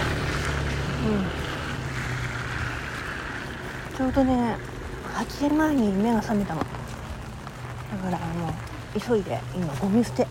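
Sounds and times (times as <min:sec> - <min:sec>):
rain falling outside: 0:00.0 - 0:10.3
speech: 0:01.0 - 0:01.4, 0:04.0 - 0:06.8, 0:08.0 - 0:10.3.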